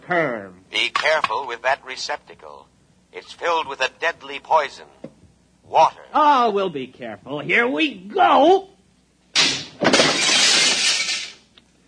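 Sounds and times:
speech: 0.1 - 5.0, 5.7 - 8.7
glass cooling tubes shattering: 9.4 - 11.5.

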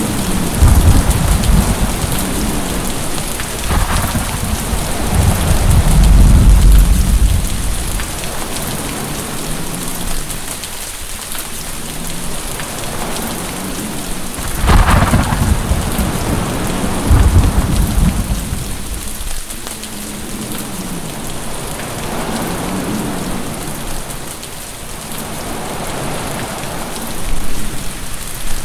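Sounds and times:
thunder: 0.0 - 8.4, 14.4 - 19.4
heavy rain: 0.0 - 28.6.

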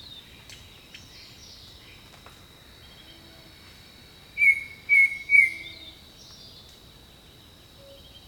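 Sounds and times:
insects droning: 0.0 - 8.2
bird whistling: 4.4 - 5.9.

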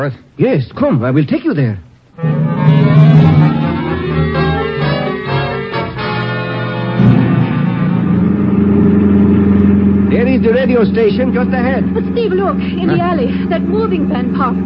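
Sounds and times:
speech: 0.0 - 3.1, 10.4 - 14.6
car engine driving: 2.2 - 6.0, 7.0 - 14.6.

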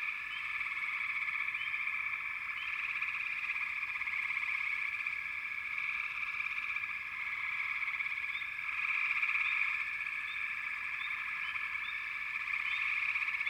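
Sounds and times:
frogs calling in chorus: 0.0 - 13.4.

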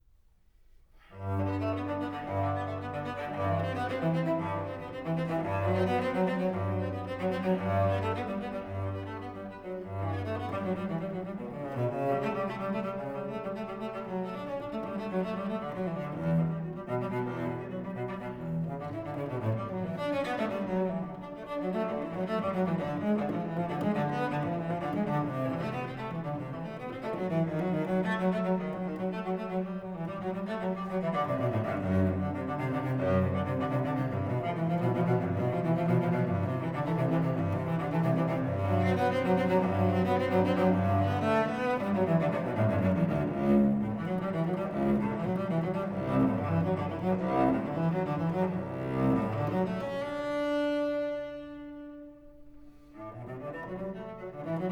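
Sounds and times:
solo cello prelude in G major: 0.0 - 54.7.

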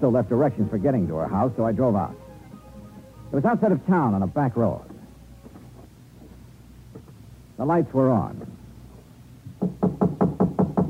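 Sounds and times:
speech: 0.0 - 2.2, 3.3 - 4.9, 7.6 - 8.6, 9.6 - 9.9
firm low knocking on a house door: 9.5 - 10.8.

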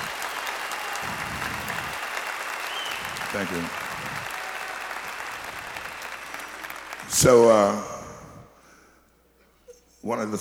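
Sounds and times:
audience applause: 0.0 - 7.8
speech: 3.3 - 3.8, 7.2 - 7.9, 10.0 - 10.4.

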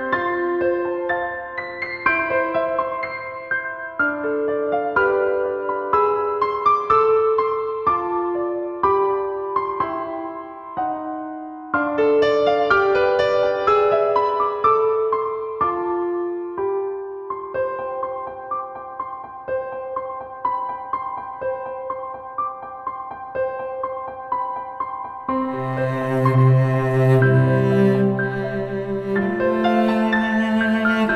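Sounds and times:
piano lullaby: 0.0 - 31.1.

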